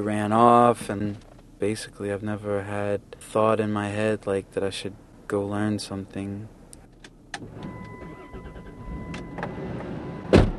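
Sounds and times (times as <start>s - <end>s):
speech: 0.0s - 6.6s, 7.4s - 7.9s
minivan door closing: 7.4s - 10.5s.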